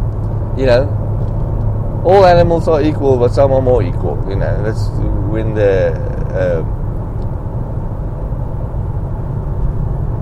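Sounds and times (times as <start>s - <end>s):
road traffic rumble: 0.0s - 10.1s
speech: 0.6s - 1.0s, 2.0s - 6.8s
higher tonal sound: 4.1s - 7.2s.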